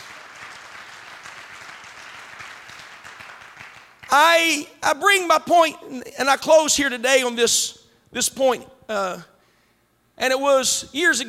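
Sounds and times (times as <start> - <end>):
audience clapping hands: 0.0 - 4.3
speech: 4.1 - 9.3, 10.2 - 11.2.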